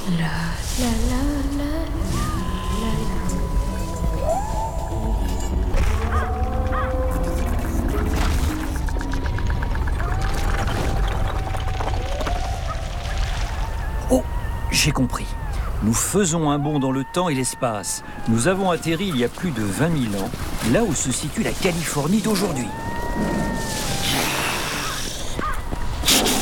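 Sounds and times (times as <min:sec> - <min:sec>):
speech: 0:00.1 - 0:02.2, 0:14.8 - 0:23.9
animal growl turning into a roar: 0:02.0 - 0:14.7, 0:22.6 - 0:25.4.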